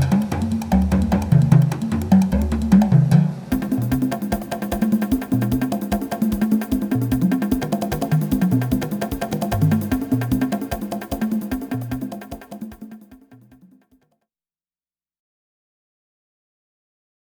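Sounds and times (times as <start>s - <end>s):
tom-tom drum: 0.0s - 13.7s.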